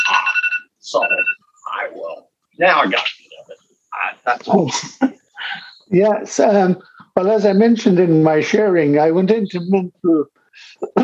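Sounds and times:
phone alarm ringing: 0.0 - 1.4
speech: 2.6 - 3.2, 4.2 - 5.1, 5.9 - 11.0.

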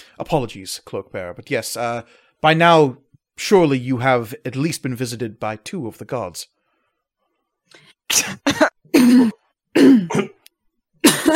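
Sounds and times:
speech: 0.2 - 6.6, 7.7 - 10.3
person clearing throat and coughing from dust: 8.1 - 11.3.

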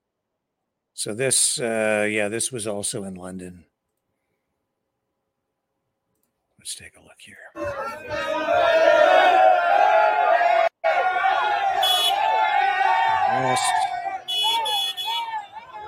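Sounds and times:
speech: 1.0 - 3.7, 6.6 - 8.8, 13.3 - 13.9
huge crowds of protesters in London England: 7.6 - 15.8.

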